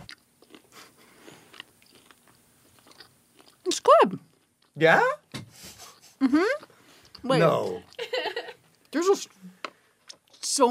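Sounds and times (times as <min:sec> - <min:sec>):
person biting into and chewing dough-covered roast peacock: 0:00.0 - 0:03.7
speech: 0:03.9 - 0:04.2, 0:04.8 - 0:05.2, 0:06.2 - 0:07.9, 0:08.9 - 0:09.4.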